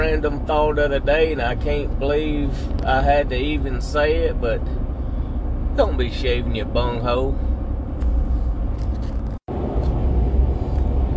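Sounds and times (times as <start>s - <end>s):
road rumble from a car driving down an interstate: 0.0s - 11.1s
speech: 0.2s - 4.9s, 5.8s - 7.4s.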